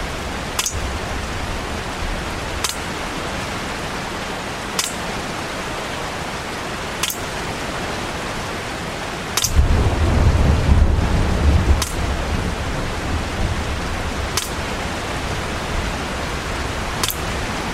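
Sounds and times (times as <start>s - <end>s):
June rainy season rain: 0.0s - 17.7s
water dripping through a leaking roof: 0.5s - 3.1s, 4.8s - 5.1s, 9.4s - 9.7s, 11.8s - 12.1s, 14.3s - 14.8s.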